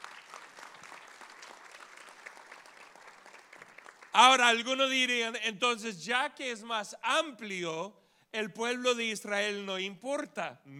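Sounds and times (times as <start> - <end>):
audience applause: 0.0 - 4.5
speech: 4.2 - 10.7.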